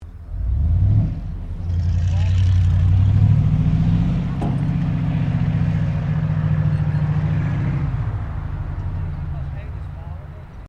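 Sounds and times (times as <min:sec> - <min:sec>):
US Air Force Humvee 4WD manoeuvring: 0:00.0 - 0:10.6.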